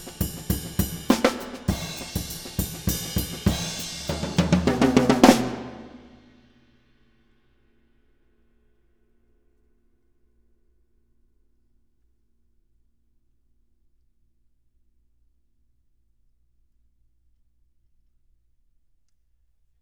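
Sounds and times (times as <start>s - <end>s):
3ft test drum in a live studio: 0.0s - 6.3s.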